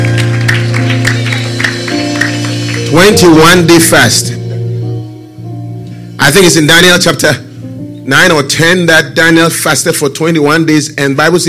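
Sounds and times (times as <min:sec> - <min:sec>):
audience clapping: 0:00.0 - 0:03.6
steady sustained low musical drone: 0:00.0 - 0:10.3
speech: 0:02.9 - 0:04.4, 0:06.2 - 0:11.4.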